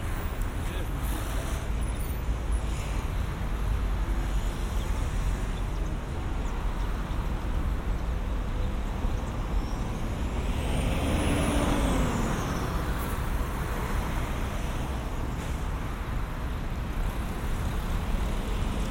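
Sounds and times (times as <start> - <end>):
street traffic rumbling: 0.0 - 18.8
vehicle passing with rising and falling whine: 10.2 - 14.6.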